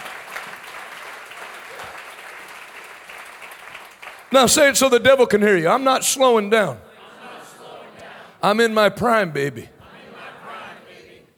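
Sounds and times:
audience clapping hands: 0:00.0 - 0:04.9
speech: 0:04.3 - 0:06.9, 0:08.4 - 0:09.7.

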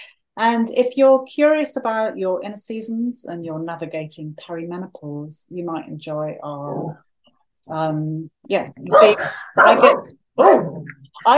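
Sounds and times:
speech: 0:00.4 - 0:11.3
dogs barking: 0:08.9 - 0:10.9.

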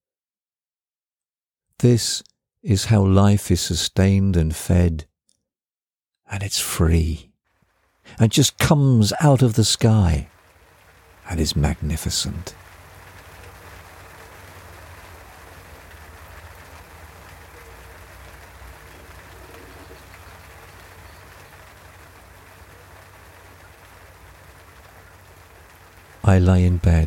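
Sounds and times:
speech: 0:01.8 - 0:05.1, 0:06.3 - 0:07.3, 0:08.0 - 0:10.4, 0:11.3 - 0:12.7, 0:26.3 - 0:27.0
rain pattering on a cabin roof: 0:07.5 - 0:08.1, 0:10.2 - 0:27.0.

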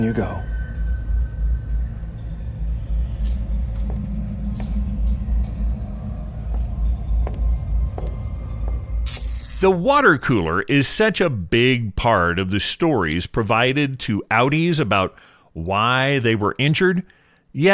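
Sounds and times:
speech: 0:00.0 - 0:00.5, 0:09.6 - 0:17.7
deep steady thrumming rumble: 0:00.0 - 0:09.8.

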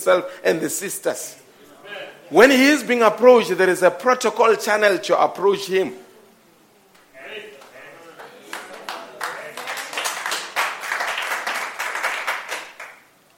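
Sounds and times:
speech: 0:00.0 - 0:06.0
audience clapping: 0:06.9 - 0:13.3.

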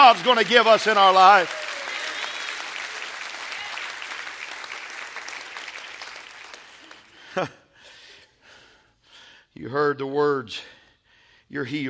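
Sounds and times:
voice cheering: 0:00.0 - 0:02.7
crowd clapping: 0:00.0 - 0:07.4
speech: 0:00.1 - 0:01.7, 0:07.4 - 0:07.6, 0:09.6 - 0:10.8, 0:11.5 - 0:11.8.

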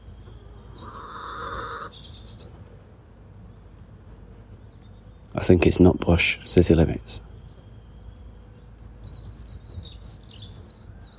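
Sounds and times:
hen clucking: 0:00.7 - 0:02.0
speech: 0:05.4 - 0:07.3.

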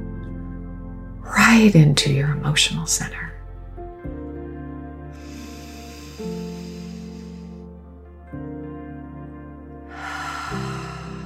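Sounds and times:
sustained droning tonal music: 0:00.0 - 0:11.2
speech: 0:01.3 - 0:03.4
air drawn in through the right nostril in a meditative breathing exercise: 0:05.1 - 0:07.7, 0:09.9 - 0:11.2.

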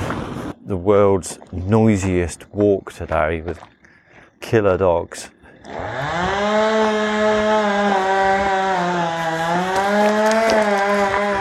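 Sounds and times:
speech: 0:00.7 - 0:03.8, 0:04.4 - 0:06.7
chainsaw cutting in a tree: 0:05.5 - 0:11.4.

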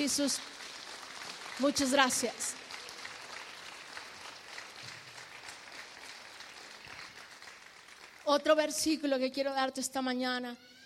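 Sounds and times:
speech: 0:00.0 - 0:00.7, 0:01.6 - 0:02.6, 0:08.3 - 0:10.8
audience applauding: 0:00.0 - 0:08.3.

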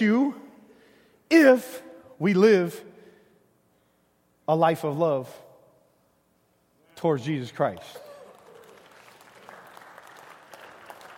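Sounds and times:
speech: 0:01.3 - 0:02.9, 0:04.5 - 0:05.4, 0:07.0 - 0:08.1
audience clapping: 0:07.7 - 0:11.1.

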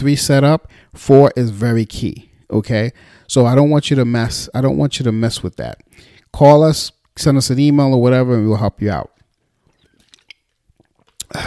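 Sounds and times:
speech: 0:00.0 - 0:09.1, 0:11.3 - 0:11.4
sipping water: 0:09.2 - 0:11.4.

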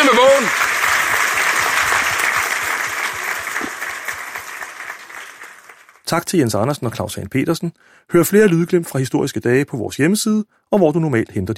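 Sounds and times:
applause from a large audience: 0:00.0 - 0:06.1
speech: 0:06.1 - 0:11.5.

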